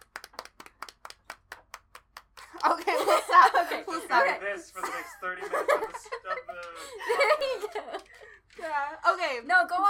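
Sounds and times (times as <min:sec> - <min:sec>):
sharp hand claps: 0:00.0 - 0:03.1
laughter: 0:02.5 - 0:08.3
speech: 0:02.7 - 0:09.8.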